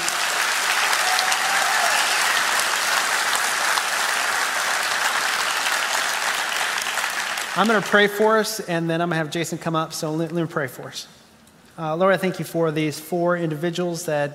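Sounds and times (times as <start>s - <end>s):
audience applause: 0.0s - 8.1s
speech: 7.6s - 11.2s, 11.8s - 14.3s.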